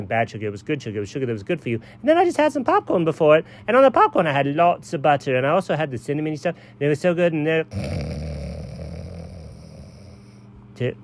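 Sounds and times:
speech: 0.0s - 8.2s, 10.8s - 11.0s
person snoring while asleep: 7.7s - 10.5s.

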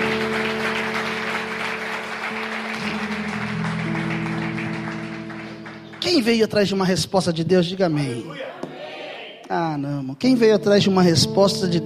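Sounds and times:
audience applause: 0.0s - 6.6s
sustained low keyboard chords: 0.0s - 8.2s, 9.8s - 11.8s
speech: 6.1s - 8.6s, 9.5s - 11.8s.

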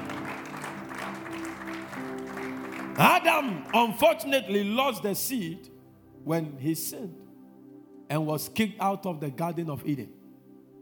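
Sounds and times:
audience clapping: 0.0s - 4.2s
speech: 3.0s - 7.2s, 8.1s - 10.2s.

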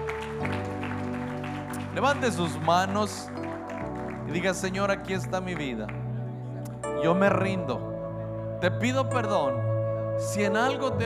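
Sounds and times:
audience clapping: 0.0s - 6.9s
sustained keyboard chords: 0.0s - 11.0s
speech: 2.0s - 3.4s, 4.3s - 6.0s, 7.0s - 7.9s, 8.6s - 9.6s, 10.2s - 11.0s.

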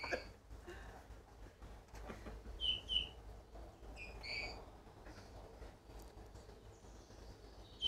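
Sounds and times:
bullfinch song: 2.5s - 3.2s, 3.8s - 4.7s, 6.4s - 7.8s.

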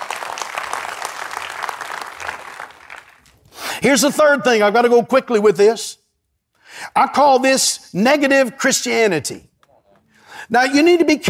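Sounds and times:
church audience clapping hands: 0.0s - 3.5s
speech: 3.8s - 6.0s, 7.0s - 9.5s, 10.4s - 11.2s.

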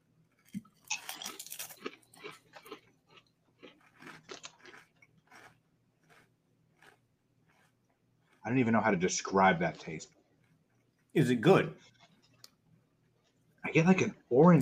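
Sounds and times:
Cooler Ranch flavoured chips being chewed: 0.4s - 8.5s
speech: 8.5s - 10.2s, 11.2s - 11.9s, 13.8s - 14.6s.

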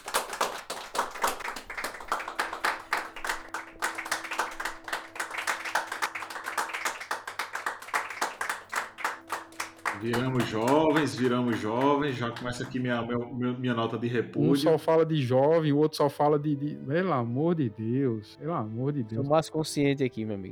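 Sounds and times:
hand clapping: 0.0s - 13.0s
speech: 10.0s - 20.5s.

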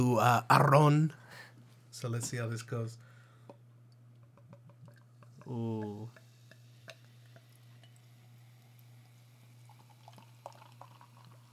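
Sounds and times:
speech: 0.0s - 1.2s, 2.0s - 3.1s, 5.5s - 6.2s
beer pouring from bottle into glass: 4.2s - 11.5s.

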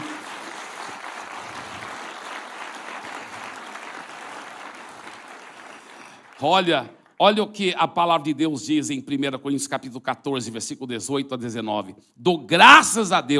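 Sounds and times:
audience applause: 0.0s - 7.2s
speech: 6.4s - 13.3s.

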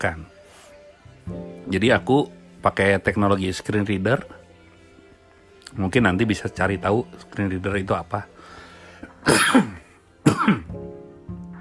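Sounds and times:
speech: 0.0s - 0.4s, 1.3s - 4.4s, 5.7s - 8.3s, 9.2s - 9.8s
person coughing: 9.2s - 10.8s.

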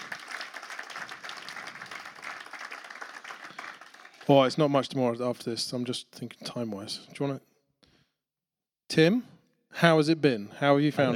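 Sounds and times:
crowd applauding, welcoming speakers on stage: 0.0s - 4.8s
speech: 4.3s - 7.5s, 8.9s - 11.1s.

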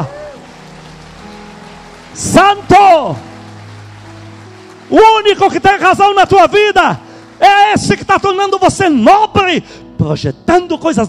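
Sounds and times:
audience applauding: 0.0s - 9.3s
speech: 2.2s - 3.3s, 4.9s - 11.0s.

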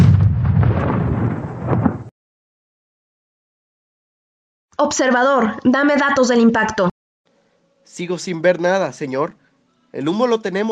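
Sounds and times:
artillery gun firing: 0.0s - 2.1s
speech: 4.8s - 6.9s, 7.9s - 10.7s.

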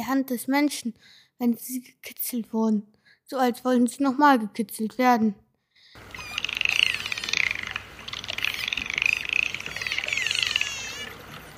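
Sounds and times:
speech: 0.1s - 5.4s
dolphins chattering and squeaking: 6.0s - 11.5s.

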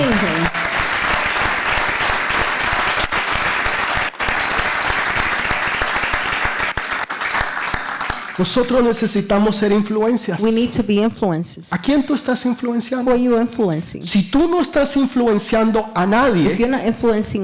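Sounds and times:
loud audience applause: 0.0s - 8.7s
speech: 8.4s - 17.4s.

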